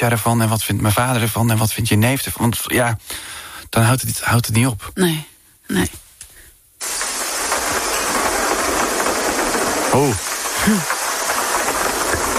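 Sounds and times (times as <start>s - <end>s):
speech: 0.0s - 6.0s, 9.9s - 11.0s
heavy downpour of rain: 6.8s - 12.3s.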